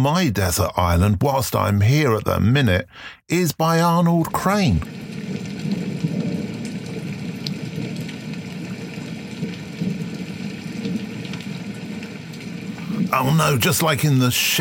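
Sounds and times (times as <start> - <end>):
speech: 0.0 - 5.1, 13.2 - 14.5
rain pattering on a surface: 3.4 - 14.5.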